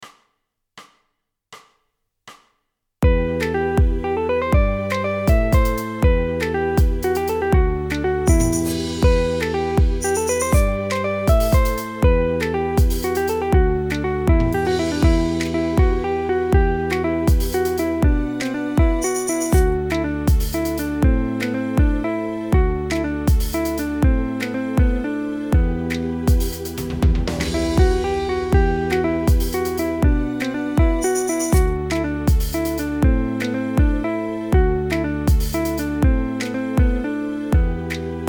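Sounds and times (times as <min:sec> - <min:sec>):
music with melody: 0:03.0 - 0:38.2.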